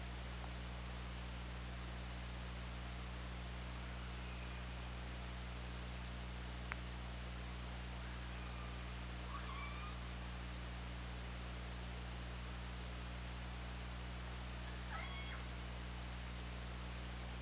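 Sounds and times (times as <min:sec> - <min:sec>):
low underwater hum: 0:00.0 - 0:17.4
killer whale squeals: 0:08.4 - 0:10.0.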